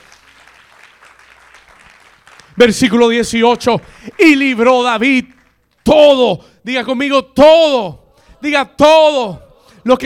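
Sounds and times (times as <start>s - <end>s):
audience applause: 0.0s - 2.8s
speech: 2.6s - 10.0s.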